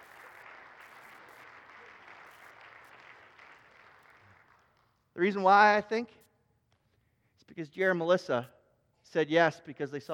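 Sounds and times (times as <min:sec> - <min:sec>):
audience applause: 0:00.0 - 0:04.8
speech: 0:05.2 - 0:06.2, 0:07.6 - 0:10.1.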